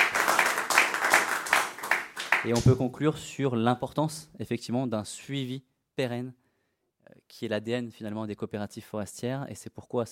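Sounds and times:
audience applause: 0.0s - 2.8s
speech: 2.4s - 6.4s, 7.0s - 10.1s.

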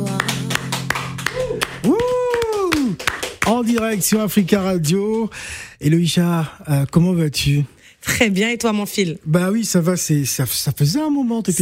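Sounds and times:
sustained sung voice: 0.0s - 3.0s
music: 0.0s - 3.8s
audience clapping in rhythm: 0.0s - 5.6s
speech: 3.5s - 11.5s.

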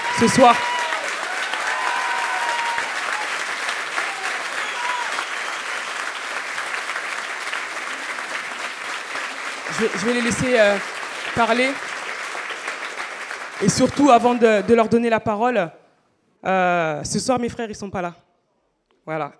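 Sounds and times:
faint cheers and voices in the crowd: 0.0s - 6.1s
audience applause: 0.0s - 14.8s
speech: 0.2s - 0.7s, 9.8s - 11.9s, 13.6s - 15.8s, 16.4s - 18.2s, 19.1s - 19.3s.

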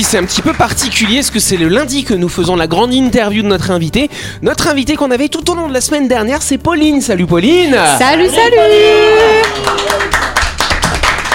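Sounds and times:
person clapping hands: 0.0s - 1.7s, 9.4s - 11.3s
speech: 0.0s - 10.2s.

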